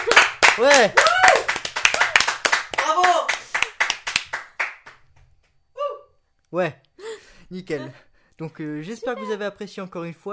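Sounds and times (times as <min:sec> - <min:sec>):
clapping: 0:00.0 - 0:05.6
speech: 0:00.6 - 0:01.4, 0:06.5 - 0:06.8, 0:07.5 - 0:10.3.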